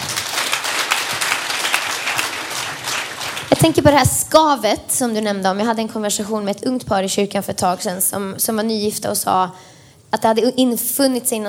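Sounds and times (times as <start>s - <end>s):
audience applause: 0.0s - 3.8s
speech: 3.6s - 11.4s.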